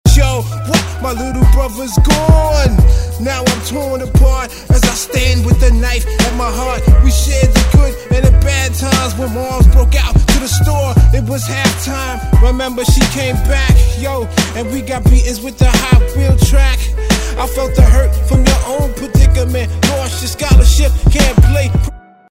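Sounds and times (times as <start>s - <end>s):
piano: 0.0s - 22.3s.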